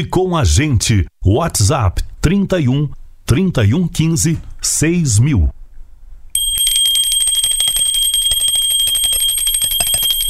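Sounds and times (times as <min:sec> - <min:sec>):
speech: 0:00.0 - 0:05.6
small hand bell ringing for school recess: 0:06.4 - 0:10.2.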